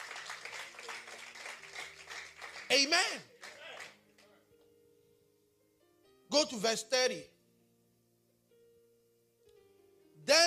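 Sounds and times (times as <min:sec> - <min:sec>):
audience clapping: 0:00.0 - 0:04.3
speech: 0:02.7 - 0:03.3, 0:06.3 - 0:07.3.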